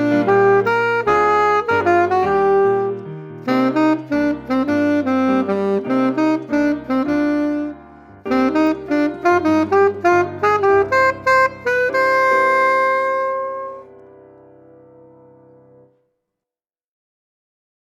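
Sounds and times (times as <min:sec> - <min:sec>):
alto voice: 0:00.0 - 0:13.9
piano: 0:00.0 - 0:16.2.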